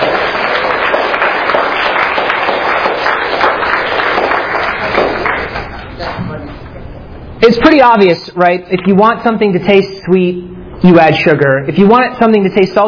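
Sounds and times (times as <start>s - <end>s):
audience applause: 0.0s - 6.1s
speech: 7.4s - 12.8s.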